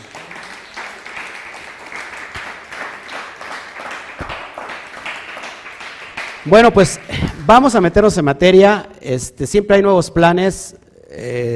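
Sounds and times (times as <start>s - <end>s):
audience applause: 0.0s - 7.4s
speech: 6.4s - 11.5s.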